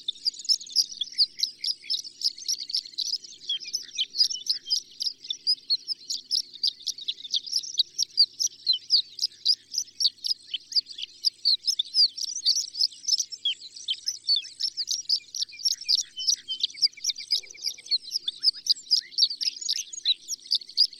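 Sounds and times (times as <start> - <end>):
horned lark calling: 0.0 - 20.9.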